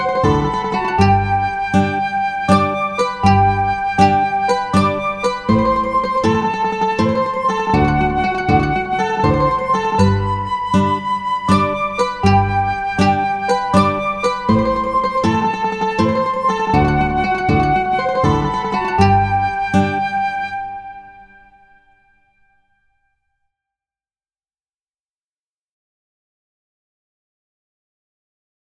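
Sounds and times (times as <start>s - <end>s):
mazurka: 0.0s - 21.6s.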